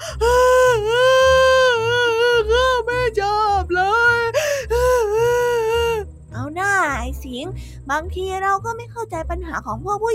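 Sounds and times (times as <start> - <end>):
child crying: 0.0 - 6.0
speech: 7.4 - 10.1.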